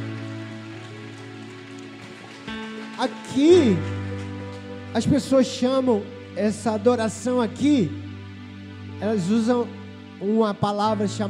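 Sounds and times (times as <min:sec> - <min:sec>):
audience applauding: 0:00.0 - 0:05.8
speech: 0:03.0 - 0:04.0, 0:04.9 - 0:08.1, 0:09.0 - 0:11.2.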